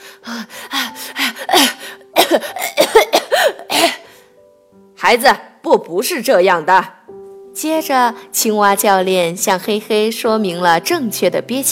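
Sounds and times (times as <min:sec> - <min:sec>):
speech: 0:00.2 - 0:00.7, 0:05.1 - 0:07.0, 0:07.6 - 0:11.7
uncontrollable coughing: 0:01.5 - 0:04.1.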